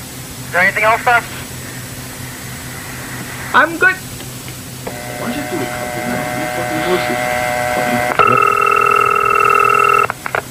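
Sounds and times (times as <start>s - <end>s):
speech: 0.5s - 1.4s, 3.5s - 4.1s, 5.2s - 6.1s
telephone ringing: 4.9s - 10.2s.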